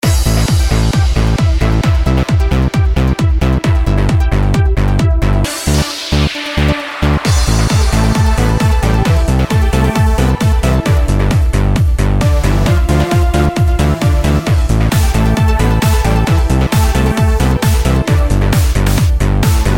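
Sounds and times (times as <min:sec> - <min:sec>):
disco dance song: 0:00.0 - 0:19.7.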